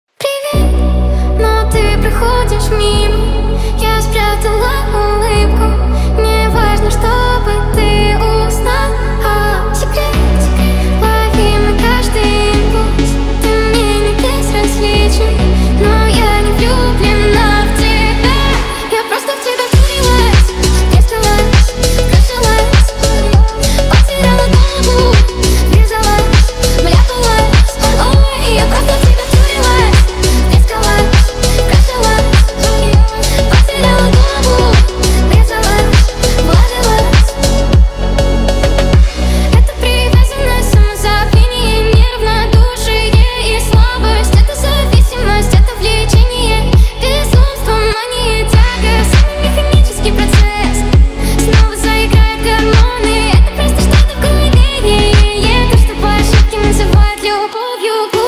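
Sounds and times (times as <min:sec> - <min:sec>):
phonk remix: 0:00.2 - 0:58.2.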